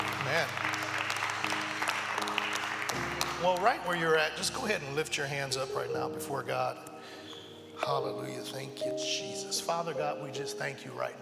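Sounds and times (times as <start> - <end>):
audience applauding: 0.0 - 4.8
speech: 0.3 - 0.7, 3.4 - 7.2, 7.8 - 11.2.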